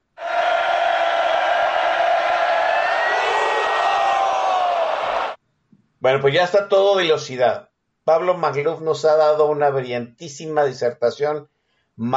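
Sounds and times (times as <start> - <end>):
crowd of fans cheering: 0.2 - 5.4
shouts and whoops: 0.2 - 5.4
speech: 6.0 - 12.1.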